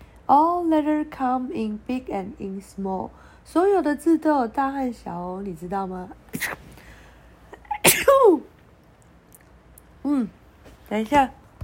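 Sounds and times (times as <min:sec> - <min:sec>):
speech: 0:00.3 - 0:06.6, 0:10.1 - 0:11.4
person sneezing: 0:06.3 - 0:06.9, 0:07.5 - 0:08.4.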